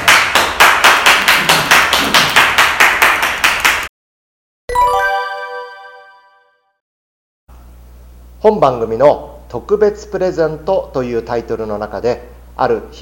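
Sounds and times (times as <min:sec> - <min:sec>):
audience clapping: 0:00.0 - 0:03.9
bell-like chime: 0:04.7 - 0:06.8
speech: 0:08.4 - 0:12.9.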